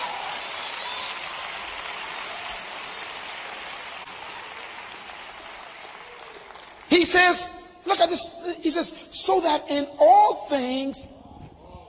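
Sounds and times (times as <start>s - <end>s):
audience clapping: 0.0s - 7.6s
speech: 7.0s - 11.2s.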